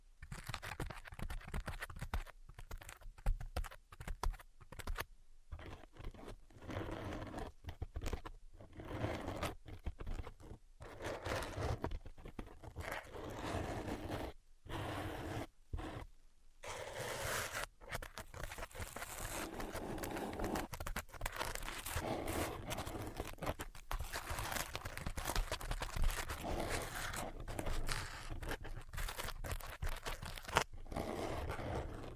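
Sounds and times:
tapping and scratching: 0:00.2 - 0:16.1, 0:17.3 - 0:32.1
crinkling bursts and rustling: 0:17.9 - 0:30.8.

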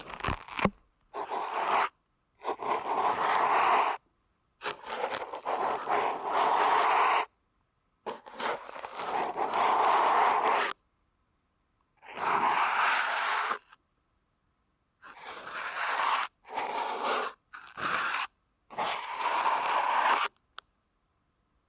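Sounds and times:
deep ear canal massage scraping: 0:00.0 - 0:04.0, 0:04.6 - 0:07.3, 0:08.1 - 0:10.8, 0:12.0 - 0:13.6, 0:15.0 - 0:20.3.

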